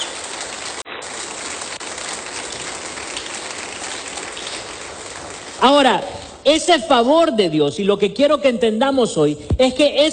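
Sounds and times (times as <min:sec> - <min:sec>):
audience applause: 0:00.0 - 0:05.8
speech: 0:05.6 - 0:10.1.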